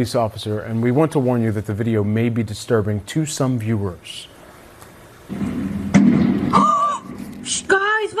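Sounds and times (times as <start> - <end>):
speech: 0.0 - 4.3, 5.3 - 5.8, 7.5 - 8.1
steady noisy background: 3.2 - 8.1
gunshot in a police shootout in Montreal: 5.3 - 6.8.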